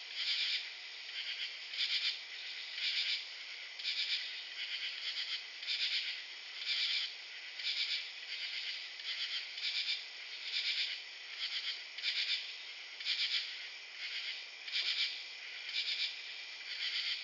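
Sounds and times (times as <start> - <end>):
forest night ambience: 0.0 - 17.2.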